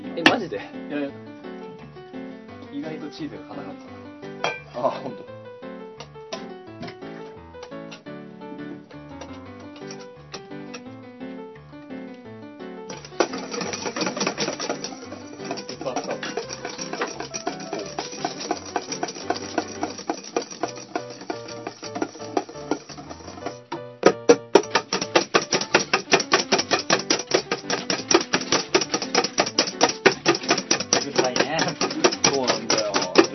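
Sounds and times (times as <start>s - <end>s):
speech: 0.2s - 1.3s, 2.8s - 5.4s
whisk beating against a bowl: 9.2s - 10.1s, 12.9s - 33.3s.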